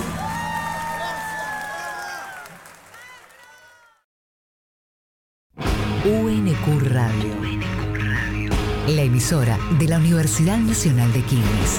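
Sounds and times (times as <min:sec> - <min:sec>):
audience applause and cheering: 0:00.0 - 0:04.0
speech: 0:06.0 - 0:07.8, 0:08.9 - 0:11.7.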